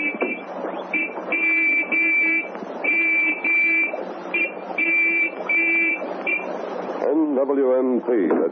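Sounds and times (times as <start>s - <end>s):
gold whistle blown as a signal reply: 0.0s - 6.5s
speech: 7.5s - 8.5s.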